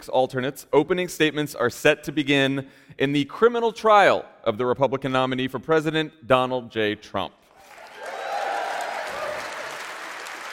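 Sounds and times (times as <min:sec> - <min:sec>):
speech: 0:00.0 - 0:07.4
audience applause: 0:07.6 - 0:10.5.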